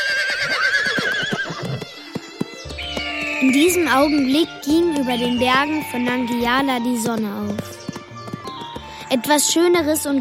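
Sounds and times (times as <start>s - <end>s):
horse whinnying: 0.0s - 2.1s
hooves clip-clopping: 0.0s - 10.1s
speech: 3.4s - 7.8s, 9.1s - 10.1s.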